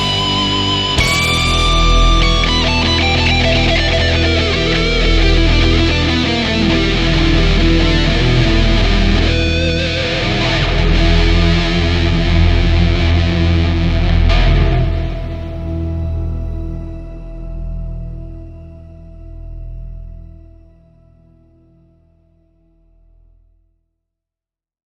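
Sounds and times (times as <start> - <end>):
instrumental music: 0.0 - 16.7.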